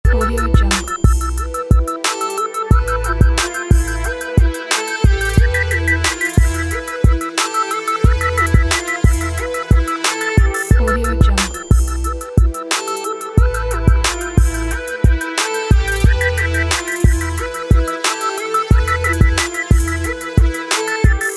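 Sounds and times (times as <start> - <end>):
hip hop background loop: 0.0 - 21.3.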